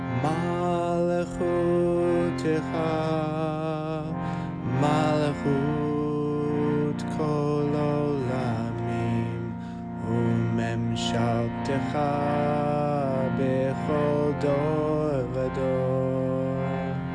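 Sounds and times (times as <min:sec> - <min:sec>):
chanting: 0:00.2 - 0:17.0.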